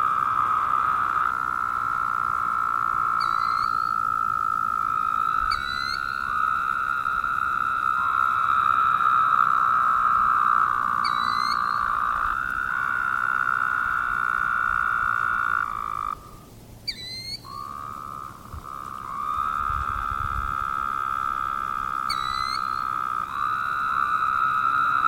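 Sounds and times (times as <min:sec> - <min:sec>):
Woodhouse's toads droning: 0:00.0 - 0:25.0
high-pitched chirps: 0:03.2 - 0:04.0, 0:05.5 - 0:06.4, 0:16.9 - 0:17.9.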